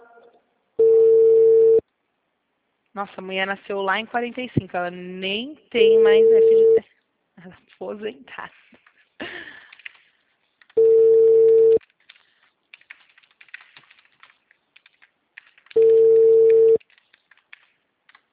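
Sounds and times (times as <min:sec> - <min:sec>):
telephone ringback tone heard from the caller's end: 0:00.8 - 0:01.8, 0:06.1 - 0:06.8, 0:10.8 - 0:11.8, 0:15.8 - 0:16.8
speech: 0:03.0 - 0:06.9, 0:07.5 - 0:08.8.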